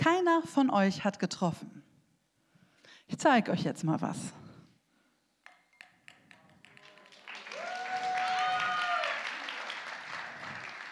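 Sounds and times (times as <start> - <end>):
speech: 0.1 - 1.8, 3.1 - 4.4
audience applause: 6.8 - 10.8
cheering voices: 7.3 - 10.4.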